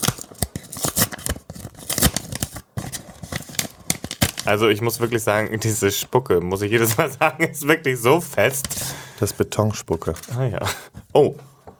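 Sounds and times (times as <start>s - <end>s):
envelope being torn open: 0.0s - 5.1s, 8.3s - 8.9s
speech: 4.5s - 11.5s.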